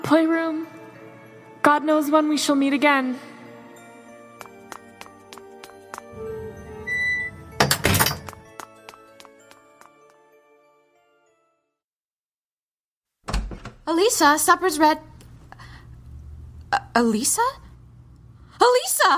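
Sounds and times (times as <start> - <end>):
speech: 0.1 - 0.7, 1.6 - 3.3, 14.0 - 15.1, 17.0 - 17.6, 18.6 - 19.1
side door opening and shutting: 6.1 - 8.4, 13.3 - 13.9.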